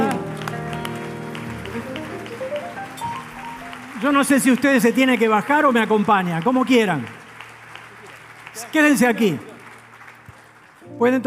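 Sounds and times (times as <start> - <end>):
audience applause: 0.0 - 11.2
speech: 4.0 - 7.2, 8.7 - 9.5, 11.0 - 11.2.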